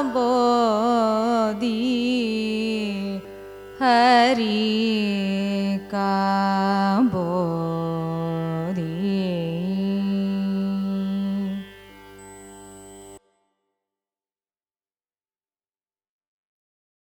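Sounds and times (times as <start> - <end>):
Carnatic music raga melody: 0.0 - 13.8.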